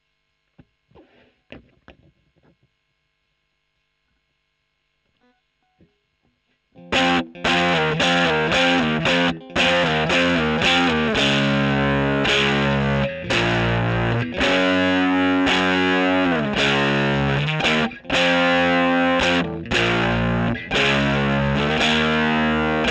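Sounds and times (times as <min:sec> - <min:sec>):
electric guitar recorded with a Gefell microphone: 0:06.8 - 0:22.8.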